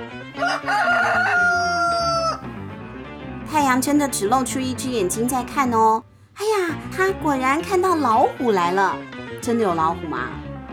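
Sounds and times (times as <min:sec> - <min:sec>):
rooster crowing: 0:00.4 - 0:02.5
speech: 0:03.6 - 0:10.4.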